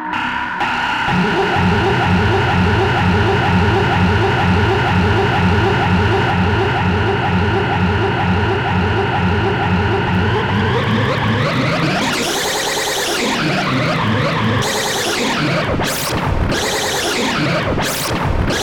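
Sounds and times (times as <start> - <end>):
synth noise: 0.1 - 18.5.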